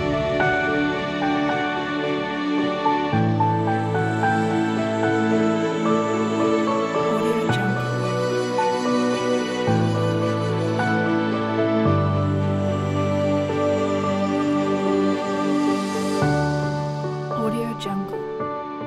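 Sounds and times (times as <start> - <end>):
cinematic soundscape music: 0.0 - 18.7.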